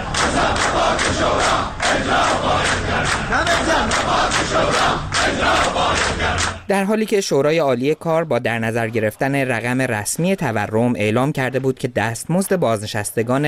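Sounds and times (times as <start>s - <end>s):
retirees shouting protest demands in street: 0.0s - 6.7s
speech: 1.1s - 13.4s.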